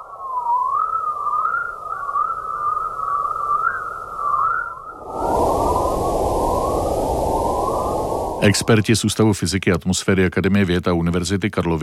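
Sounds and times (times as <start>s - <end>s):
electromagnetic space chirps at audible frequencies: 0.0s - 9.0s
speech: 8.4s - 11.8s.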